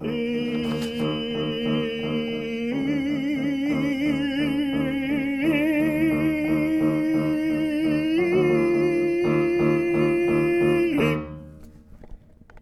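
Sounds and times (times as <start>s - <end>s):
tenor choir singing: 0.0s - 11.1s.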